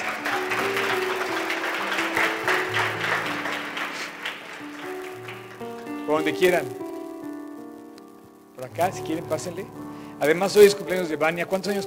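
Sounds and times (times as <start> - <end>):
audience applause: 0.0 - 6.5
sustained musical notes: 0.0 - 11.8
speech: 6.1 - 6.8, 8.6 - 11.8.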